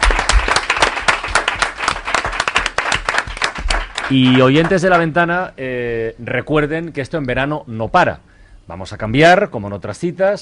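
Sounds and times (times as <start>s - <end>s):
studio applause: 0.0s - 5.2s
speech: 4.1s - 10.3s.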